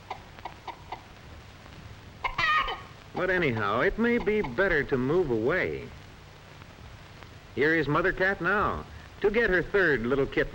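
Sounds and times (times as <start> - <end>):
hen clucking: 0.0 - 1.2, 2.2 - 4.8
speech: 3.2 - 6.0, 7.6 - 10.5.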